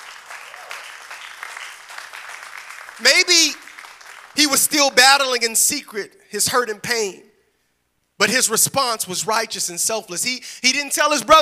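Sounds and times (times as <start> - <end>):
people clapping: 0.0 - 5.0
speech: 3.0 - 3.6, 4.4 - 7.3, 8.2 - 11.4.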